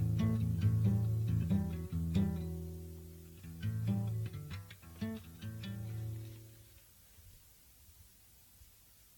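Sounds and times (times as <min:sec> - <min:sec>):
guitar ballad: 0:00.0 - 0:06.6.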